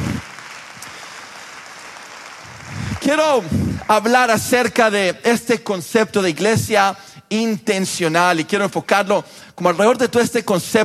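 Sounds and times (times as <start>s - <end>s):
audience applause: 0.0s - 4.2s
speech: 3.1s - 10.8s.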